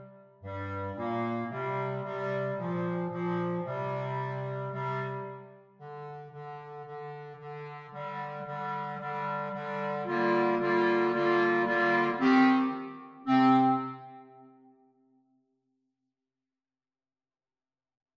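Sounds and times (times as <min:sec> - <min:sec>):
clarinet quartet: 0:00.0 - 0:14.5.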